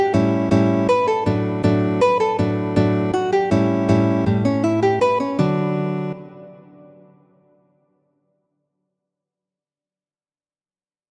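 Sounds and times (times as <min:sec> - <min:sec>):
guitar waltzes: 0:00.0 - 0:07.2.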